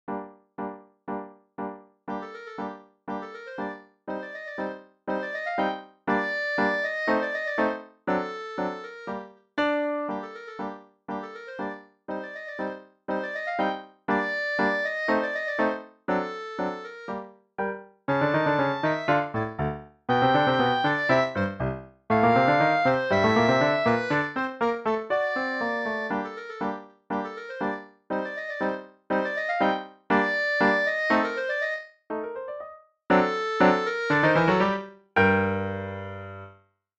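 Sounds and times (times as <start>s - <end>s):
clarinet melody: 2.1s - 36.6s.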